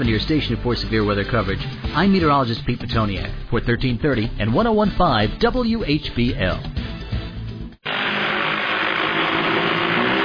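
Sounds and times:
speech: 0.0s - 6.8s
drone flying: 7.8s - 10.2s.

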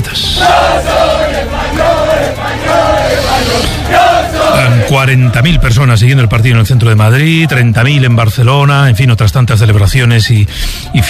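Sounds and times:
crowd of football fans celebrating Spain's World Cup victory: 0.0s - 9.0s
speech: 4.9s - 11.0s.

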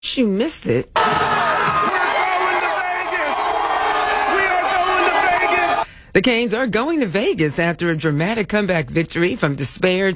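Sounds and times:
speech: 0.2s - 2.0s, 6.1s - 10.1s
individual shouts: 1.0s - 5.8s
packed hockey crowd cheering in a frenzy: 1.0s - 5.8s.

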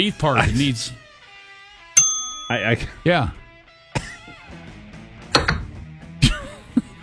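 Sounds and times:
speech: 0.0s - 1.0s, 2.5s - 3.4s
broken reception desk bell struck: 2.0s - 2.8s, 5.4s - 5.7s.

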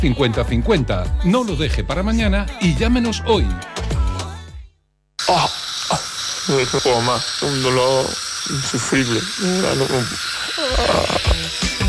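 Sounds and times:
speech: 0.0s - 3.8s, 5.3s - 11.8s
dentist's drill whirring: 5.2s - 11.8s.

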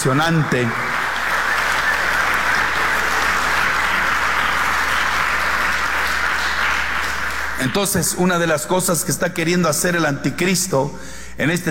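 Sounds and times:
speech: 0.0s - 0.8s, 7.6s - 11.6s
audience applauding: 0.0s - 8.3s.

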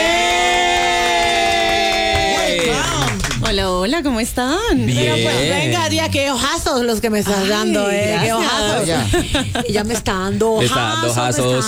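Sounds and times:
laughter: 0.0s - 3.4s, 4.8s - 5.8s, 7.6s - 11.6s
audience applause: 0.0s - 3.6s
speech: 3.8s - 11.6s.

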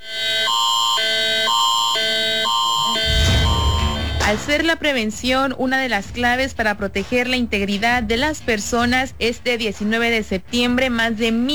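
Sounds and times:
electronic emergency alert tone from a mobile phone: 0.0s - 4.7s
speech: 4.3s - 11.5s.

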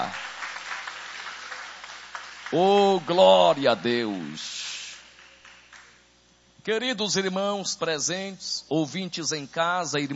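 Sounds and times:
speech: 0.0s - 0.2s, 2.5s - 4.6s, 6.6s - 10.1s
church congregation applause during a worship service: 0.0s - 6.0s.

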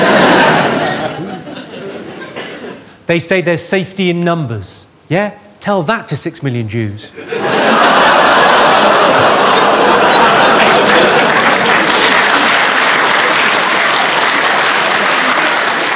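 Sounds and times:
laughter: 0.0s - 2.8s, 7.1s - 15.9s
speech: 3.1s - 10.2s
audience applause: 8.2s - 15.9s.

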